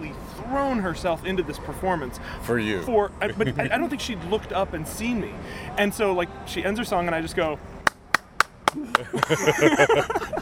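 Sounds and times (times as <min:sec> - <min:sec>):
speech: 0:00.5 - 0:07.8, 0:08.7 - 0:10.4
laughter: 0:03.2 - 0:03.9, 0:08.7 - 0:10.4
hand clapping: 0:07.8 - 0:09.6.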